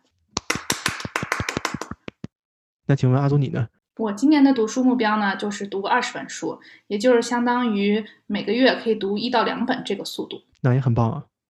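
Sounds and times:
hand clapping: 0.0 - 2.4
speech: 2.9 - 11.3.

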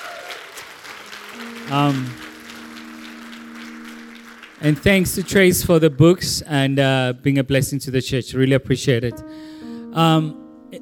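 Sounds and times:
audience applause for panelists: 0.0 - 6.3
speech: 1.7 - 2.2, 4.6 - 10.8.

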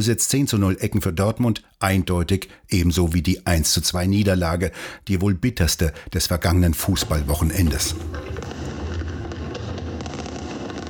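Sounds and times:
speech: 0.0 - 8.6
large fireworks display booming over a river: 6.5 - 10.8.

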